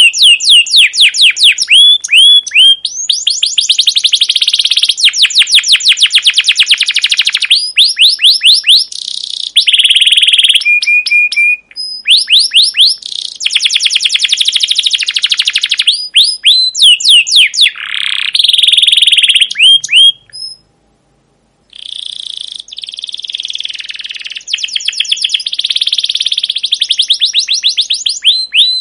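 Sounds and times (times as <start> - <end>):
canary song of rolling trills and chirps: 0.0 - 20.7, 21.7 - 28.8.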